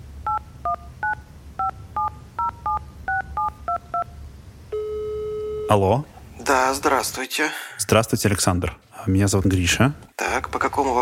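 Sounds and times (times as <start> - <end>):
low hum: 0.0 - 11.0
phone keypad dialing beeps: 0.3 - 4.1
speech: 5.7 - 11.0.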